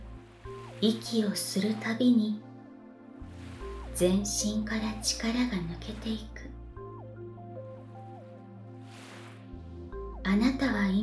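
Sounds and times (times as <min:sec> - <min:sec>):
underwater bubbling: 0:00.0 - 0:01.8, 0:02.5 - 0:10.2
speech: 0:00.8 - 0:02.5, 0:04.0 - 0:06.6, 0:10.3 - 0:11.0.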